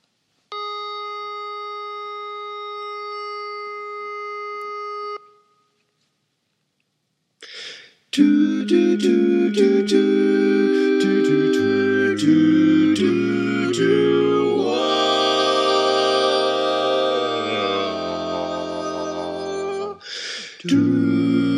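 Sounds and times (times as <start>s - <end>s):
tenor singing: 8.1s - 21.5s.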